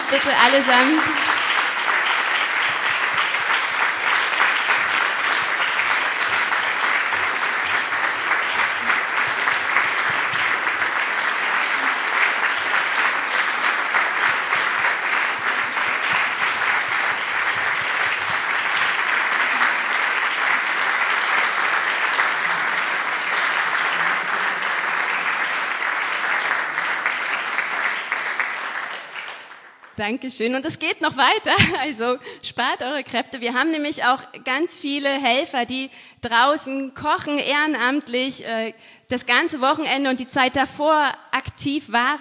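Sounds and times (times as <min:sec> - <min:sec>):
audience applause: 0:00.0 - 0:30.0
speech: 0:00.1 - 0:01.3, 0:30.0 - 0:42.2.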